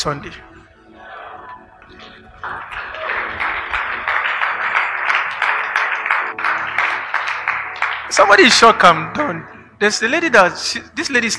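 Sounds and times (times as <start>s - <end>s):
speech: 0.0s - 0.5s, 8.1s - 11.3s
audience clapping: 2.4s - 8.9s.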